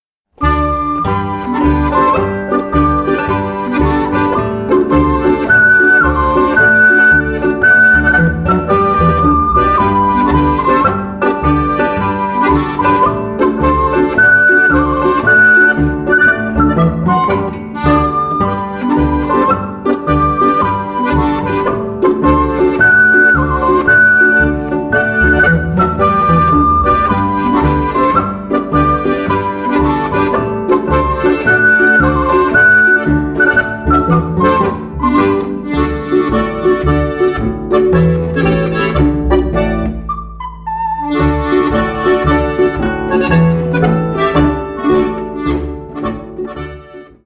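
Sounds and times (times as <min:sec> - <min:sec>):
ocarina polka: 0:00.2 - 0:47.2.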